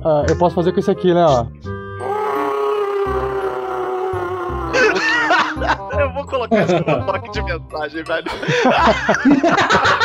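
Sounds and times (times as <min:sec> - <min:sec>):
speech: 0:00.0 - 0:01.7, 0:06.0 - 0:10.0
agonized scream: 0:02.0 - 0:05.5
laughter: 0:04.7 - 0:07.2, 0:08.2 - 0:10.0.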